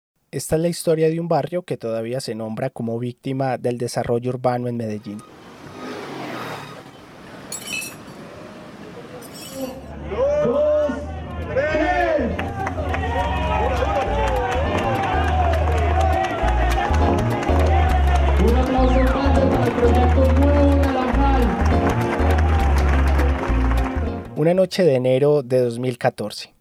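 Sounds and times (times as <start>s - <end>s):
speech: 0.3s - 5.4s, 24.4s - 26.5s
crowd sounds at a social event: 8.8s - 24.2s.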